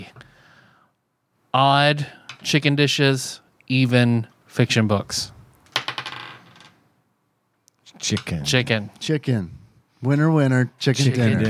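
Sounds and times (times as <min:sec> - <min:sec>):
speech: 0:01.5 - 0:05.4, 0:08.0 - 0:11.4
dice being rolled: 0:05.6 - 0:06.8.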